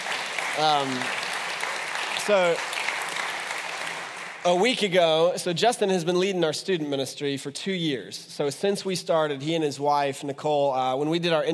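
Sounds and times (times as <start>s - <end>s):
audience applause: 0.0s - 4.8s
speech: 0.6s - 1.2s, 2.3s - 2.7s, 4.4s - 11.5s.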